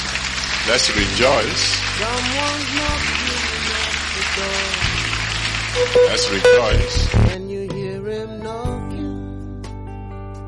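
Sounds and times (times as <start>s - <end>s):
audience clapping: 0.0s - 7.4s
speech: 0.7s - 3.8s, 4.4s - 5.0s, 5.8s - 7.4s.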